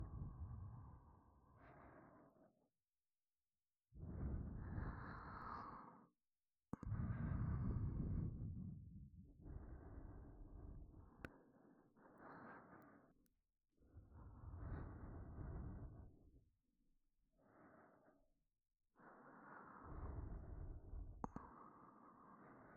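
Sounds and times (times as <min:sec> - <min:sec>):
breathing in both ears: 0:00.2 - 0:02.7, 0:04.0 - 0:06.2, 0:06.8 - 0:08.6, 0:09.4 - 0:13.3, 0:14.0 - 0:16.4, 0:17.4 - 0:18.4, 0:19.0 - 0:22.7.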